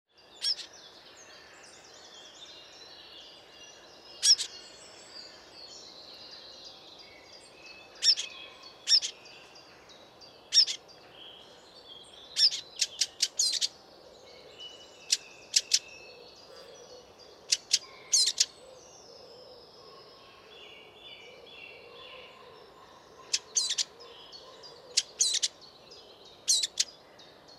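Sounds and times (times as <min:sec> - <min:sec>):
faint birdsong: 0:00.1 - 0:27.5
Eurasian blackcap tack calls: 0:12.4 - 0:13.7, 0:15.1 - 0:15.8, 0:17.5 - 0:18.5, 0:23.2 - 0:23.9, 0:24.9 - 0:25.5.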